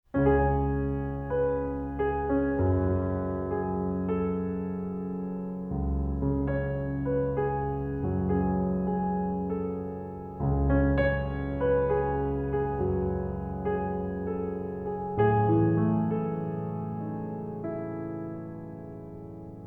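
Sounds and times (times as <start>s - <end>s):
piano: 0.0s - 19.6s.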